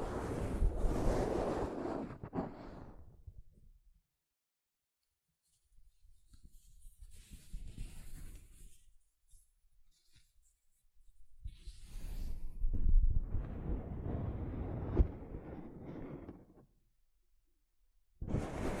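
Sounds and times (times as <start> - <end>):
soft fabric brushing against a microphone: 0.0 - 3.0, 5.4 - 16.6.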